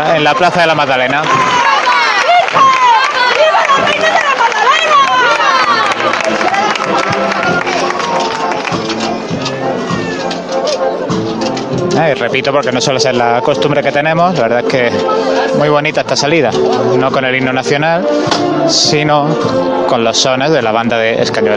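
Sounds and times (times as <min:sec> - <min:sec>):
speech: 0:00.0 - 0:01.5, 0:02.5 - 0:02.8, 0:12.0 - 0:21.5
crowd applause at street procession: 0:00.0 - 0:11.5
hubbub of overlapping voices: 0:00.0 - 0:21.5.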